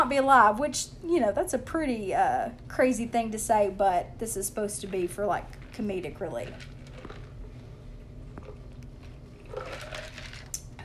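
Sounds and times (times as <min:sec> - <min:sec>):
speech: 0:00.1 - 0:06.8
person sipping a drink: 0:06.6 - 0:07.6, 0:08.3 - 0:10.8.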